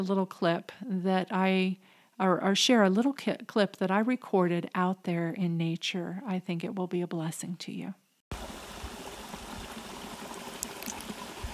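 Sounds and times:
speech: 0.0 - 8.0
bubbling brook: 8.3 - 11.5.

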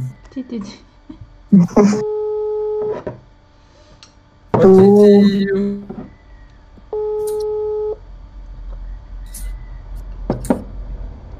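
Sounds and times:
faint hum: 0.0 - 11.3
speech: 0.4 - 0.9, 1.5 - 2.2, 4.6 - 5.8
telephone ringing tone: 1.9 - 3.0, 6.9 - 8.0.

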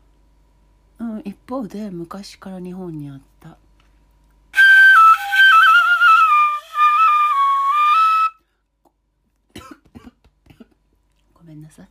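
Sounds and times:
speech: 1.2 - 3.6
shinobue bamboo flute melody: 4.6 - 8.4
person coughing: 9.5 - 10.8.

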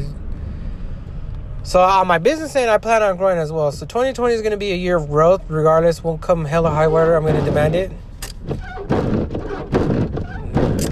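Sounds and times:
low rumbling background: 0.0 - 10.9
speech: 1.6 - 8.6
pickup truck windshield wiper blades thumping: 6.5 - 10.9.

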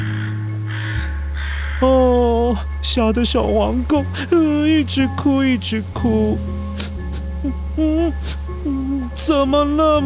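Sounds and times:
crow cawing: 0.0 - 2.4
speech: 1.8 - 6.6, 7.4 - 10.0.

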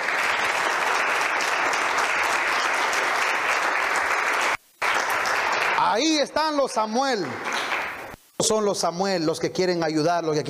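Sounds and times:
audience applause: 0.0 - 6.3, 7.0 - 8.1
speech: 6.0 - 7.5, 8.4 - 10.4.

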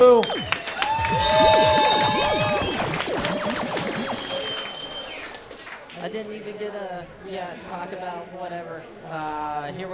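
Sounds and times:
speech: 0.0 - 1.7, 6.0 - 9.9
audience clapping and cheering: 0.2 - 6.1.

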